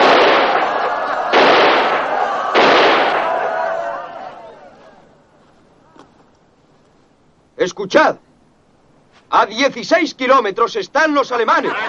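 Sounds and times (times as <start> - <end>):
gunshots fired into the air: 0.0 - 3.6
speech: 7.6 - 8.3, 9.3 - 11.8
laughter: 11.4 - 11.8.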